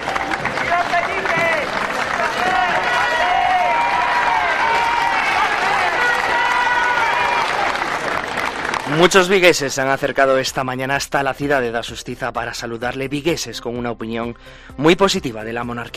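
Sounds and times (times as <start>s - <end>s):
large crowd applause: 0.0s - 10.1s
speech: 9.0s - 15.9s.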